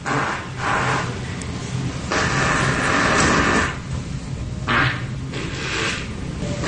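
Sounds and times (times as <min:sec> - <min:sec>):
farts recorded in a hotel lobby: 0:00.0 - 0:01.2, 0:02.1 - 0:03.8, 0:04.6 - 0:06.6.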